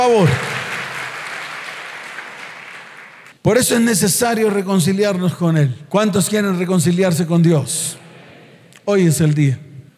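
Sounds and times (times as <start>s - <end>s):
audience applause: 0.0s - 3.3s
speech: 0.1s - 0.5s, 3.4s - 8.0s, 8.8s - 9.7s.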